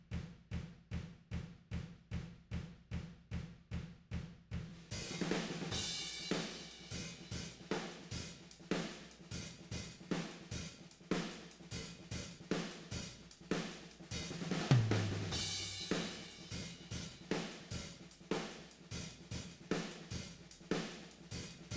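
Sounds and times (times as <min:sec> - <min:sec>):
tom drums: 0:00.1 - 0:21.7.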